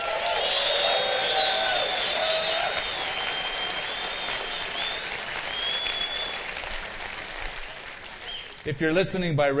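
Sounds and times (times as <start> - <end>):
audience whooping, hooting and hollering: 0.0 - 6.6
audience applauding: 0.0 - 9.0
speech: 8.6 - 9.5.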